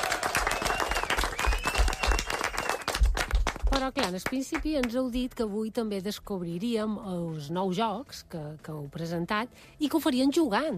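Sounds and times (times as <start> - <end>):
audience applause: 0.0 - 3.8
speech: 3.9 - 10.7.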